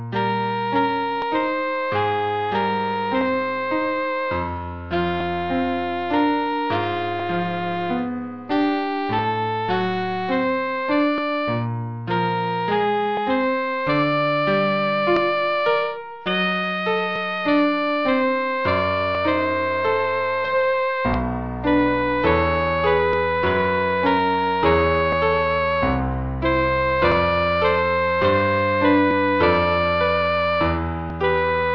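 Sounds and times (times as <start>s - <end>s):
piano: 0.0s - 31.7s
alto saxophone in E-flat: 0.1s - 31.7s.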